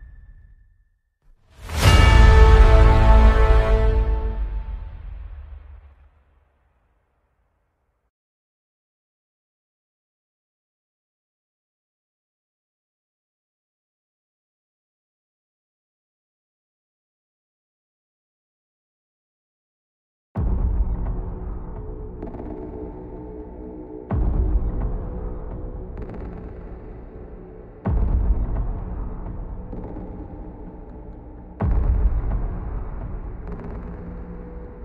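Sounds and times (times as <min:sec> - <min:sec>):
tension music for streaming: 0:01.6 - 0:06.0, 0:20.4 - 0:34.8.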